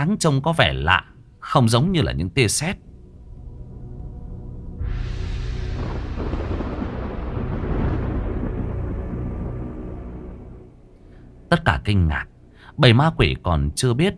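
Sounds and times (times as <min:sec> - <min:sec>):
speech: 0:00.0 - 0:02.9, 0:11.5 - 0:14.1
booming explosions rumbling in the sky: 0:03.2 - 0:10.7.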